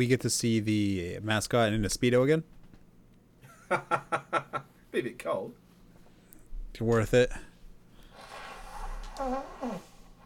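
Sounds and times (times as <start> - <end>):
speech: 0.0 - 2.6, 3.7 - 4.4, 5.0 - 5.6, 6.8 - 7.5, 9.2 - 9.9
man blowing his nose: 8.1 - 10.2.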